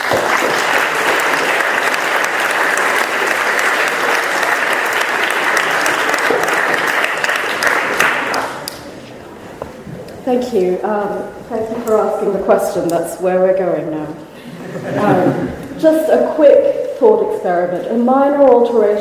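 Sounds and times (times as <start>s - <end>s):
audience applause: 0.0s - 8.8s
speech: 10.3s - 18.9s
laughter: 14.4s - 15.6s.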